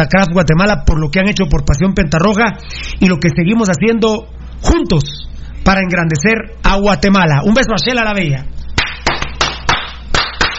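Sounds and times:
speech: 0.0 - 8.6
applause: 8.8 - 10.5.

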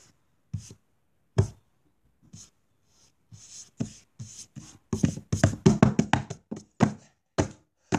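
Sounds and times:
feet banging out thumps: 5.0 - 7.9.

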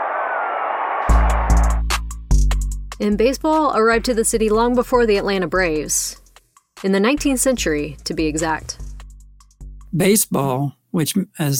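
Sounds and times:
stadium crowd cheering championship win: 0.0 - 2.0
speech: 3.0 - 6.2, 6.8 - 8.8, 10.0 - 11.5.

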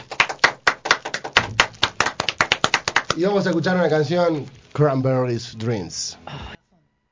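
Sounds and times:
applause: 0.0 - 4.0
speech: 3.2 - 6.6.

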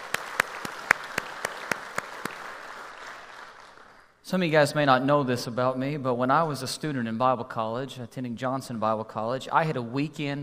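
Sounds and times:
church congregation clapping: 0.0 - 4.2
speech: 4.3 - 10.4.

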